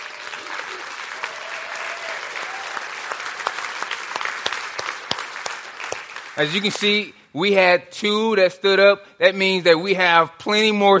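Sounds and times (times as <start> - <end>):
audience applause: 0.0 - 6.9
speech: 6.4 - 10.9.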